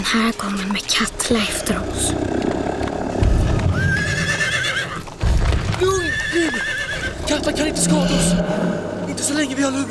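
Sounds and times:
speech: 0.1s - 2.7s, 5.8s - 6.7s, 7.3s - 9.8s
horse hooves clip-clopping along a river: 1.8s - 7.4s
horse whinnying: 3.6s - 5.2s, 5.8s - 9.1s.

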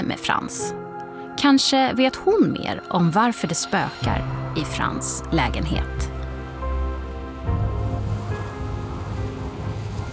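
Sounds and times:
speech: 0.1s - 0.8s, 1.4s - 6.1s
wind rustling through tree leaves: 4.2s - 10.1s.

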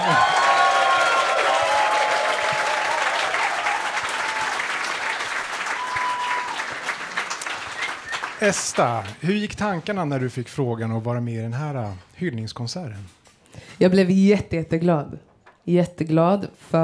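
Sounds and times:
audience applause: 0.0s - 9.2s
faint tonal notes or whistles: 7.5s - 8.4s
speech: 8.4s - 13.2s, 13.8s - 16.8s.

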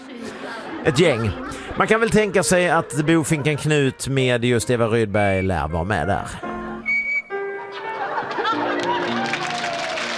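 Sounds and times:
chatter: 0.0s - 4.0s
laughter: 0.0s - 4.3s, 7.4s - 10.1s
speech: 0.8s - 6.5s
shrill whistles: 6.8s - 7.5s
crowd clapping and cheering: 8.0s - 10.1s.

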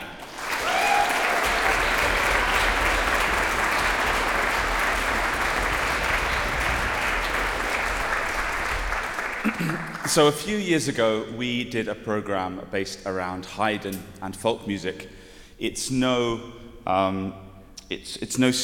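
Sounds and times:
audience applause: 0.0s - 10.3s
speech: 10.1s - 18.6s.

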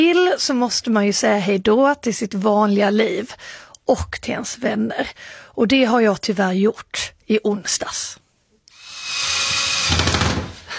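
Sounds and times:
speech: 0.0s - 8.2s
power drill driving screws while assembling a World Cup sign: 8.7s - 10.6s.

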